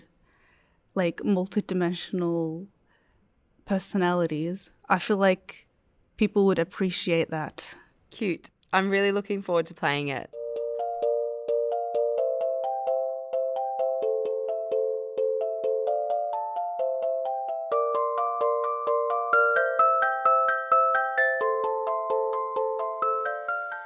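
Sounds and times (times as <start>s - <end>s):
speech: 1.0s - 2.8s, 3.7s - 10.4s
game music of bright plucked bell-like notes: 10.4s - 23.8s.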